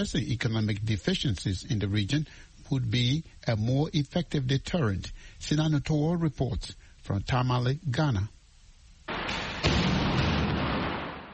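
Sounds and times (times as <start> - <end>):
speech: 0.0 - 8.4
gunfire from a simulated military gunfight at Tamale International Airport: 9.1 - 11.3.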